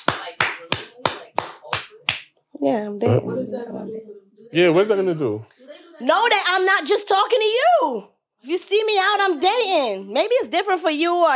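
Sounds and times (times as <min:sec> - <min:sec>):
sharp hand claps: 0:00.0 - 0:02.4
speech: 0:02.6 - 0:11.3.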